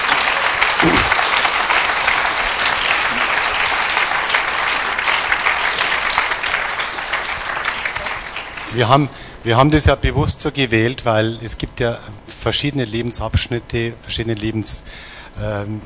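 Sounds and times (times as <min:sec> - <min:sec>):
audience applause: 0:00.0 - 0:08.9
speech: 0:08.7 - 0:15.8.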